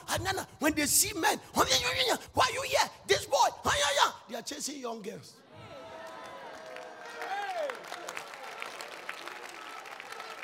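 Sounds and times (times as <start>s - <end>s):
speech: 0.2s - 5.7s
audience clapping: 6.0s - 10.4s.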